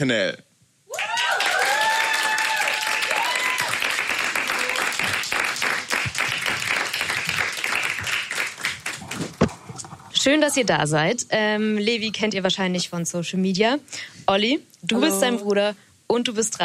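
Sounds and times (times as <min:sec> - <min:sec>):
speech: 0:00.0 - 0:00.5, 0:10.2 - 0:16.6
crowd whooping and cheering: 0:00.9 - 0:06.4
crowd applauding: 0:00.9 - 0:09.5.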